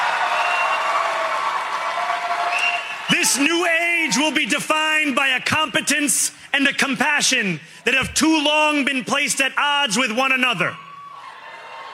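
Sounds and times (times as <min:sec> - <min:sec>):
crowd cheering: 0:00.0 - 0:05.2, 0:10.7 - 0:11.9
speech: 0:03.2 - 0:10.8.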